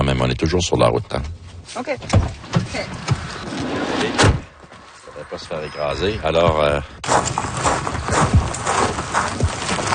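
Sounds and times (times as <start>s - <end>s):
speech: 0.2s - 4.4s, 5.2s - 7.6s
rocks falling: 7.0s - 9.9s.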